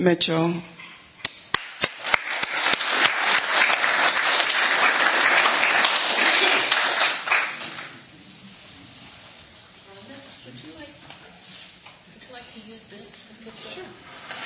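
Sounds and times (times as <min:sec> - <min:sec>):
audience applause: 0:01.5 - 0:08.0.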